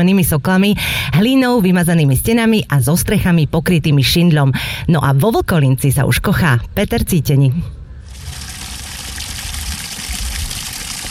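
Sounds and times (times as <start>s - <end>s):
speech: 0.0s - 7.8s
village stream rushing: 8.1s - 11.1s.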